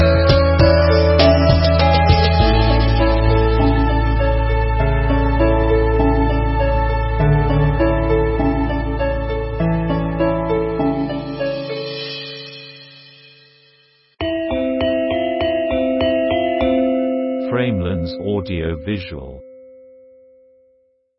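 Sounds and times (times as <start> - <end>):
Javanese gamelan beat: 0.0 - 6.8, 7.4 - 19.6.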